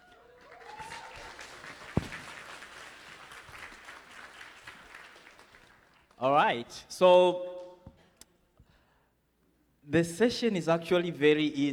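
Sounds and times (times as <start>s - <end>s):
audience applause: 0.0s - 6.2s
speech: 6.2s - 7.5s, 9.9s - 11.7s.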